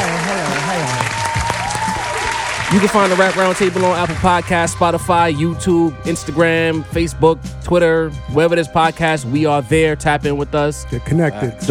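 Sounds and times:
applause: 0.0 - 2.7
speech: 2.7 - 11.7.

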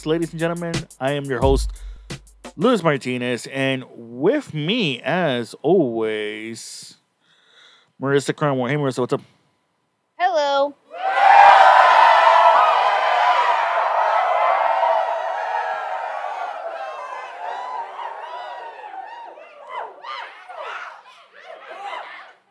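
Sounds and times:
speech: 0.0 - 7.0, 8.0 - 9.3, 10.2 - 11.2
studio audience cheering and laughing: 11.0 - 22.4.

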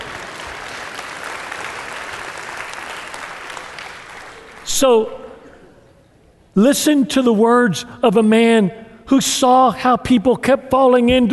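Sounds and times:
audience applause: 0.0 - 4.7
speech: 4.7 - 5.2, 6.6 - 11.3.

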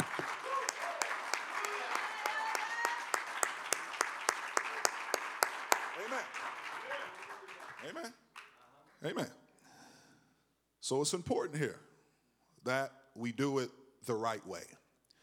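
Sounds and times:
audience clapping hands in a steady rhythm: 0.0 - 9.2
speech: 9.0 - 9.4, 10.9 - 11.9, 12.6 - 14.8.

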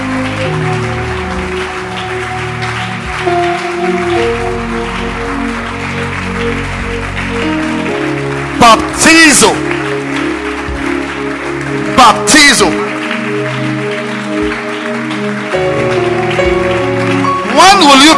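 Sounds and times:
crowd clapping: 0.0 - 18.1
speech: 8.6 - 9.8, 12.0 - 13.0.

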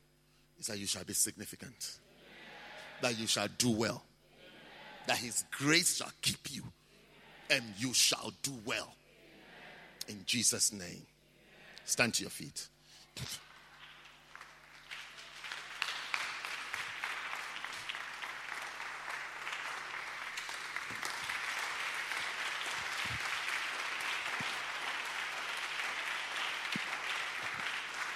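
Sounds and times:
speech: 0.6 - 2.1, 3.0 - 4.1, 5.0 - 6.8, 7.5 - 9.0, 10.1 - 11.1, 11.9 - 13.5
audience clapping: 13.2 - 28.1.

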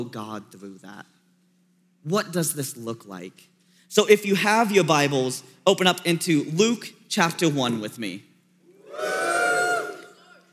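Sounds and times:
speech: 0.0 - 1.2, 2.0 - 8.3
crowd cheering and whooping: 8.7 - 10.5.

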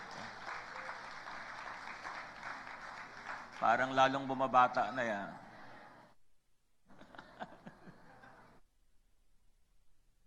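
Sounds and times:
audience applause at a church gathering: 0.0 - 3.9
speech: 3.6 - 5.4.

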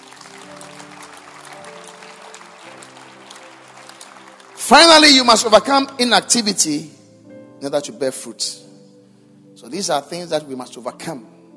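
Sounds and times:
audience clapping: 0.0 - 6.0
speech: 4.7 - 7.0, 7.6 - 8.7, 9.6 - 11.4.

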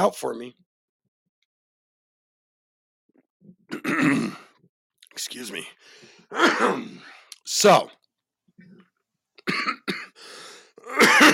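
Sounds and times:
speech: 0.0 - 0.6, 3.7 - 4.4, 5.2 - 8.0
person coughing after choking on a drink: 3.7 - 4.5, 6.3 - 7.2, 9.4 - 10.2, 10.8 - 11.3.

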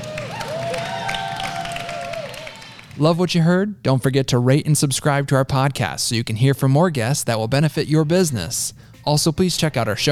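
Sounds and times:
audience applause: 0.0 - 3.0
speech: 3.0 - 10.1.

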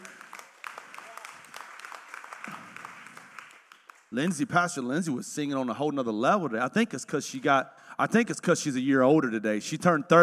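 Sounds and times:
church congregation applauding during a Sunday service: 0.0 - 4.8
speech: 4.1 - 10.2.

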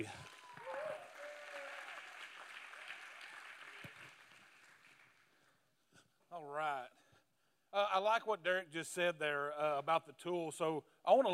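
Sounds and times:
speech: 0.0 - 0.3, 6.4 - 7.0, 7.7 - 11.3
audience clapping: 0.0 - 5.6
whoops from the audience: 0.1 - 3.9.

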